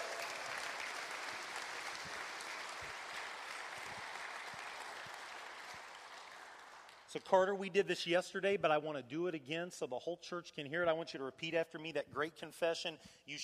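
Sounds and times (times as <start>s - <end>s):
audience applauding: 0.0s - 7.1s
speech: 7.1s - 13.4s.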